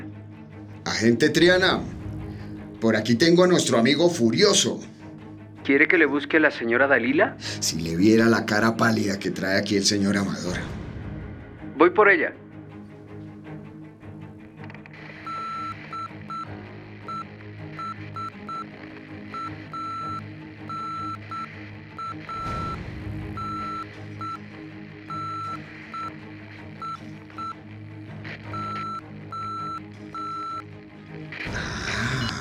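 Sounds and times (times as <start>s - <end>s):
speech: 0.9s - 2.0s, 2.8s - 4.9s, 5.6s - 10.8s, 11.8s - 12.4s
Morse code beeps: 15.2s - 27.6s, 28.4s - 30.7s.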